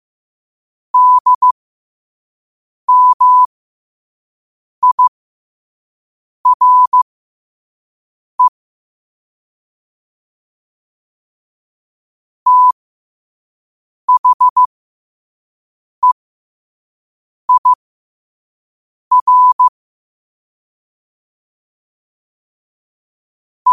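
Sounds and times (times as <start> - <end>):
morse code at 5 wpm: 1.0 - 1.6, 2.9 - 3.5, 4.8 - 5.1, 6.5 - 7.0, 12.5 - 12.8, 14.1 - 14.7, 17.5 - 17.8, 19.1 - 19.7.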